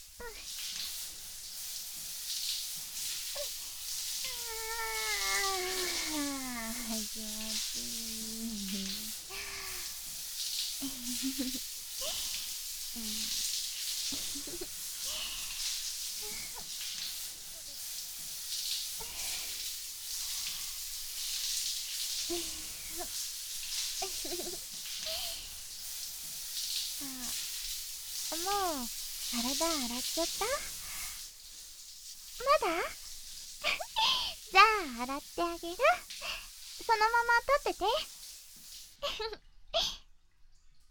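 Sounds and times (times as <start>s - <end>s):
shower water spraying: 0.0s - 39.1s
speech: 11.2s - 11.7s, 30.1s - 30.8s, 32.6s - 33.0s, 35.0s - 36.1s, 36.9s - 38.1s, 39.0s - 39.4s.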